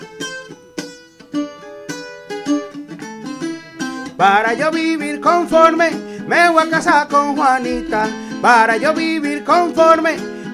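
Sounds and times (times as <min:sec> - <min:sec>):
cuatro strummed in a lively rhythm: 0:00.0 - 0:10.5
speech: 0:04.2 - 0:10.5.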